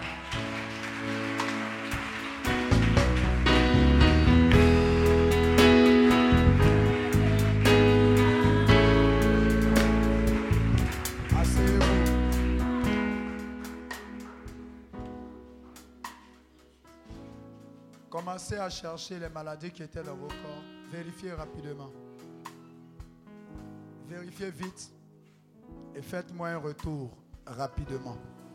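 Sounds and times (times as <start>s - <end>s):
audience cheering and applauding: 0.0s - 14.1s
speech: 18.4s - 22.2s, 24.1s - 25.0s, 25.7s - 28.3s.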